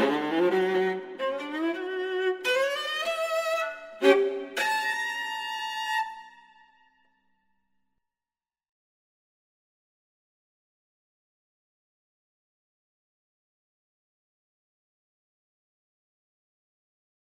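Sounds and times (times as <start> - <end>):
viola playing: 0.0 - 6.5.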